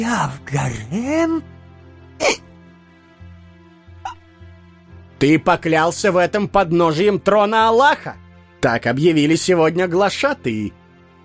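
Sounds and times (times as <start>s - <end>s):
speech: 0.0s - 1.5s, 2.2s - 2.5s, 5.2s - 11.2s
frightened man hiccuping: 2.2s - 2.4s.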